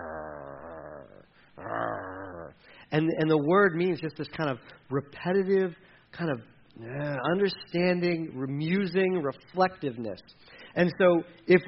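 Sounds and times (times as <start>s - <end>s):
human voice imitating an animal's low growl: 0.0s - 2.6s
speech: 2.9s - 11.6s.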